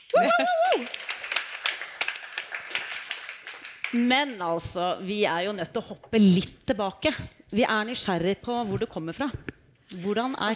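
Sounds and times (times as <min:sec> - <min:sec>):
short whooping vocal cheer: 0:00.0 - 0:01.0
small applause: 0:00.0 - 0:04.1
speech: 0:00.1 - 0:01.1, 0:03.9 - 0:10.5.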